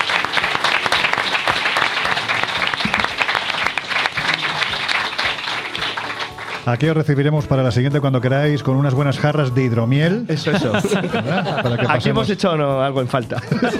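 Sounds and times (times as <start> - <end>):
audience applause: 0.0 - 6.8
laughter: 0.2 - 5.7, 10.3 - 12.5, 13.1 - 13.7
speech: 6.6 - 13.7.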